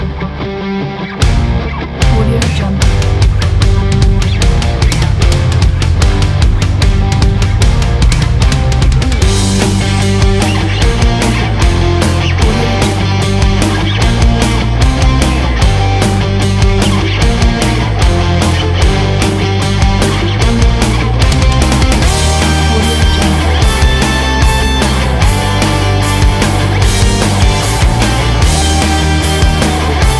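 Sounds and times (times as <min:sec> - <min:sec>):
promotional sport rock music: 0:00.0 - 0:30.1.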